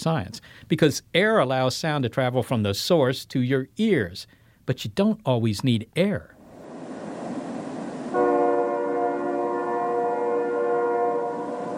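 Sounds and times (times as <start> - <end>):
speech: 0.0 - 6.4
low rumble of rail noise: 6.4 - 11.7
distant train horn blast: 8.1 - 11.7.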